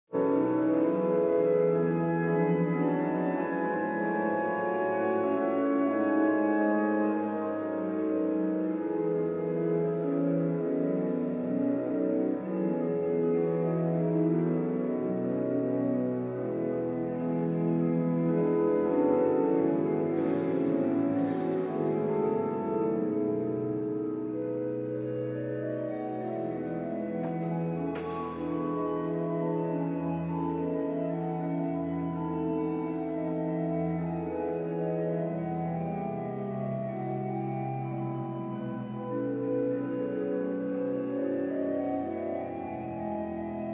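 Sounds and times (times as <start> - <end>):
organ music in a cathedral: 0.1 - 43.7.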